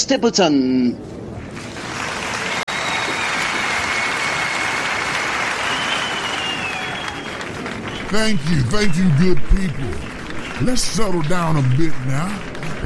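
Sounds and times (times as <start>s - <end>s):
speech: 0.1s - 1.1s, 8.1s - 12.8s
audience clapping: 1.4s - 12.8s.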